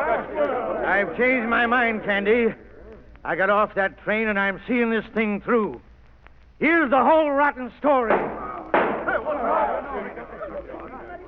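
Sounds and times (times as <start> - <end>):
speech: 1.0 - 5.9, 6.6 - 8.4
gunshot: 8.1 - 9.2
laughter: 9.0 - 11.2.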